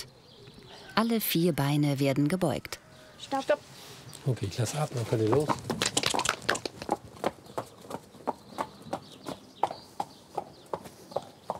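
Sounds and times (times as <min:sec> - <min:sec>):
speech: 0:01.0 - 0:05.8
horse trotting hooves: 0:04.6 - 0:11.5.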